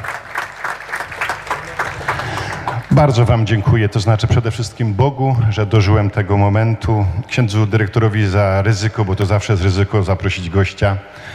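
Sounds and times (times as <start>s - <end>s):
audience applause for a priest at a Tarnów pilgrimage gathering: 0.0s - 3.5s
speech: 2.9s - 11.3s.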